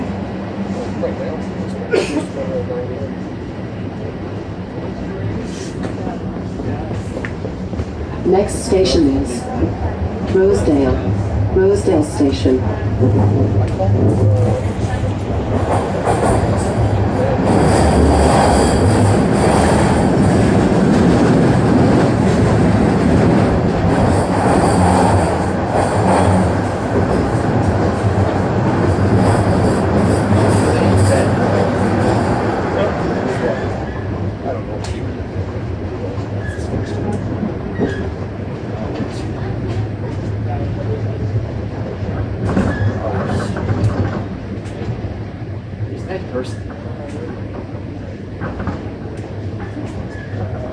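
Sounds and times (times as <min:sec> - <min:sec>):
subway train running between stations: 0:00.0 - 0:50.7
speech: 0:01.0 - 0:03.3, 0:08.2 - 0:09.7, 0:10.3 - 0:14.7.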